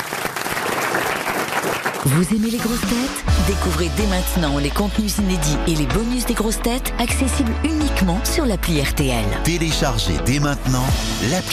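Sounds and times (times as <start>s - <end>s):
audience applause: 0.0s - 2.8s
speech: 2.0s - 11.5s.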